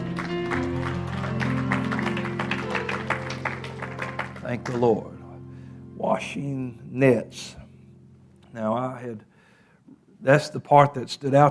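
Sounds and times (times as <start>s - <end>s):
audience hand clapping: 0.0s - 5.2s
sustained droning keyboard chords: 0.0s - 9.2s
speech: 4.5s - 5.2s, 6.0s - 7.6s, 8.5s - 9.3s, 10.2s - 11.4s.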